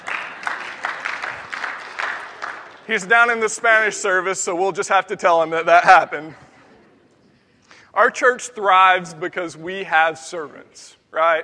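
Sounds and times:
crowd clapping: 0.0s - 3.9s
speech: 2.9s - 6.5s, 8.0s - 11.4s.

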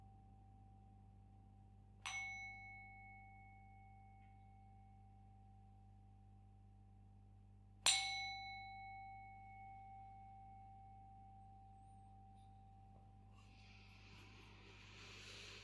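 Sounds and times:
faint steady hum: 0.0s - 15.6s
meditation bell struck: 2.0s - 6.3s, 7.8s - 14.2s.

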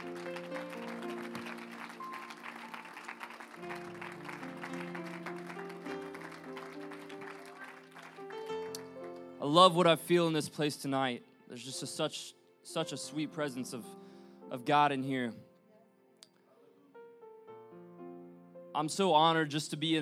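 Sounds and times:
audience clapping hands in applause: 0.0s - 9.3s
speech: 9.5s - 15.4s, 18.8s - 20.0s.

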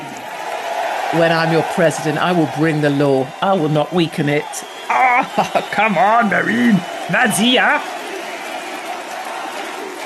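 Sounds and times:
speech: 1.1s - 8.0s
laughter: 4.9s - 7.8s
crowd chanting at political rally: 4.9s - 10.0s.

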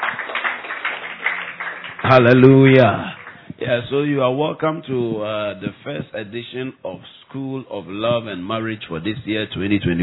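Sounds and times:
audience clapping: 0.0s - 3.9s
speech: 2.1s - 10.0s.

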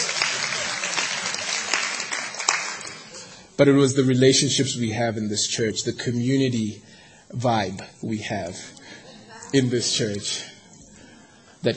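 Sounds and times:
audience applause: 0.0s - 3.3s
speech: 3.6s - 8.8s, 9.5s - 10.5s.

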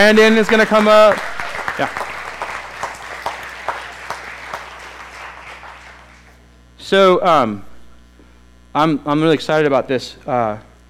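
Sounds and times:
speech: 0.0s - 2.0s, 6.9s - 7.7s, 8.7s - 10.7s
audience applause: 0.0s - 6.4s.

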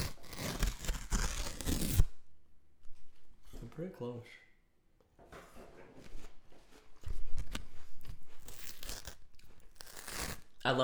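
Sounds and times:
crisp crunching and tearing: 0.0s - 2.1s, 8.4s - 10.7s
speech: 3.8s - 4.5s, 10.6s - 10.8s.

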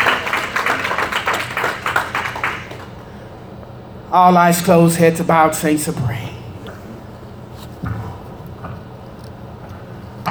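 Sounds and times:
crowd applause: 0.0s - 3.5s
speech: 4.1s - 6.3s.

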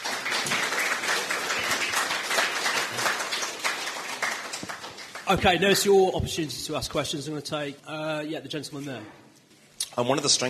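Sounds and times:
audience applauding the panel: 0.0s - 6.0s
speech: 5.3s - 9.2s, 10.0s - 10.4s.

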